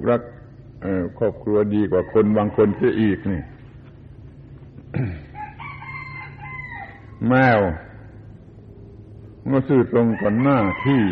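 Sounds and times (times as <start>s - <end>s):
speech: 0.0s - 3.5s, 4.9s - 5.2s, 7.2s - 7.9s, 9.5s - 11.1s
rooster crowing: 1.7s - 3.7s, 5.3s - 8.0s, 10.0s - 11.1s.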